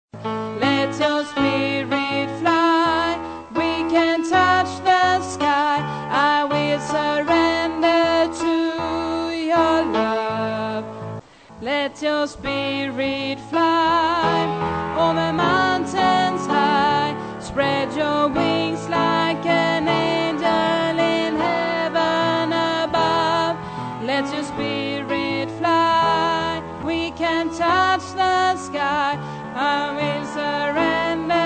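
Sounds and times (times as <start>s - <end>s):
bass voice part singing: 0.6s - 31.4s.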